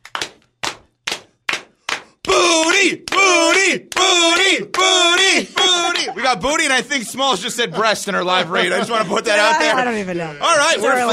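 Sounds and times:
slow clap: 0.0s - 6.2s
speech: 2.8s - 11.1s
laughter: 5.0s - 11.1s.

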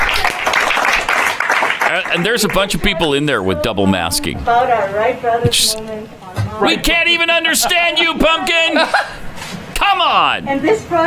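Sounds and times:
crowd clapping: 0.0s - 3.2s
speech: 1.9s - 9.2s, 9.8s - 11.0s
laughter: 8.4s - 9.3s.

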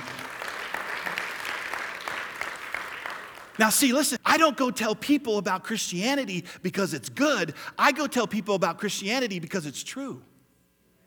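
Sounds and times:
audience applause: 0.0s - 3.6s
speech: 3.6s - 10.3s.

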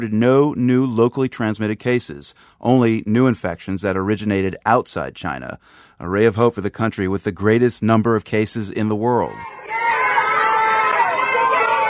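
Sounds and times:
speech: 0.0s - 9.6s
Wuhan residents shouting and cheering from balconies and rooftops: 9.2s - 11.8s.

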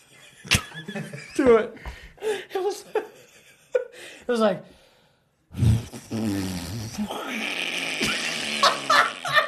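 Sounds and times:
speech: 0.4s - 3.1s, 4.3s - 4.8s, 6.2s - 8.0s
vocal imitation of a bubbling fart: 5.5s - 9.4s.

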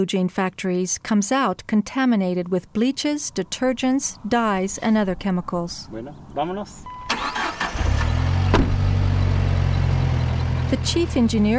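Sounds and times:
speech: 0.0s - 7.3s, 10.7s - 11.5s
car engine while driving: 2.4s - 11.5s.

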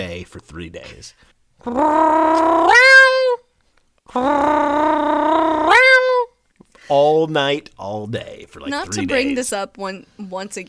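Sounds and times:
speech: 0.0s - 3.2s, 4.1s - 5.1s, 6.9s - 10.6s
person imitating a cat's yowl: 1.6s - 3.5s, 4.1s - 6.4s, 8.7s - 9.3s.

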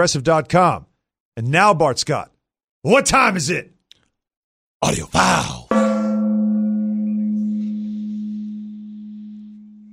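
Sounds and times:
speech: 0.0s - 3.8s, 4.8s - 5.7s
gong being struck: 5.7s - 9.9s.

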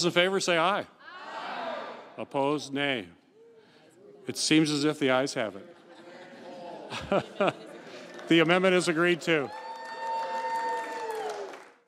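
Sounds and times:
speech: 0.0s - 1.0s, 2.2s - 3.2s, 4.3s - 5.8s, 6.9s - 7.7s, 8.3s - 9.6s
laughter: 5.5s - 9.2s
crowd cheering after a vote: 6.6s - 11.8s
crowd clapping: 7.8s - 11.8s.

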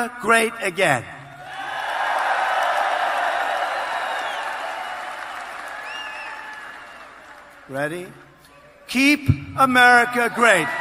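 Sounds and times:
speech: 0.0s - 1.2s, 7.7s - 8.3s, 8.9s - 10.7s
audience applause and cheering: 1.4s - 7.7s.

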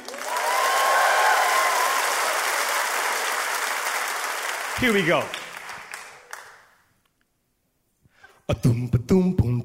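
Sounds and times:
audience clapping: 0.0s - 7.0s
speech: 4.8s - 5.4s, 8.5s - 9.5s.

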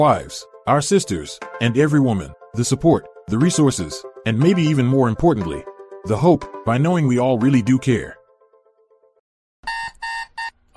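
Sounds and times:
speech: 0.0s - 8.2s
alarm clock buzzing: 9.7s - 10.5s.

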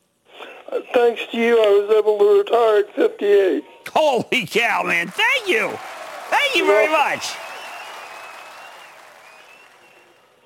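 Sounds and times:
speech: 0.9s - 7.4s
hand clapping: 5.1s - 10.2s.

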